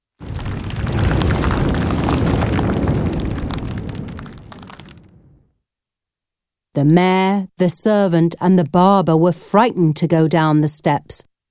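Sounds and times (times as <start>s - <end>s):
thunder: 0.2s - 5.5s
speech: 6.8s - 11.3s.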